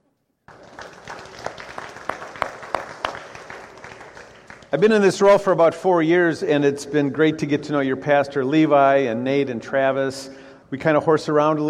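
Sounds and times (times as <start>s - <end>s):
audience applauding: 0.5s - 5.2s
speech: 4.7s - 11.6s.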